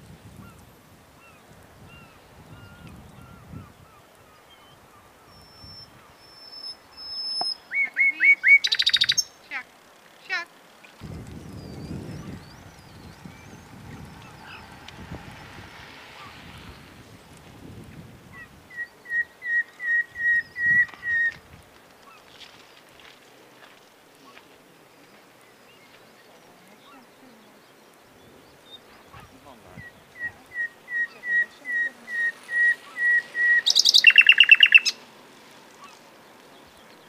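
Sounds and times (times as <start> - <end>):
common nightingale song: 1.2 - 9.4, 11.4 - 16.9, 18.3 - 21.4, 28.6 - 35.0
low rumbling noise: 11.0 - 18.7.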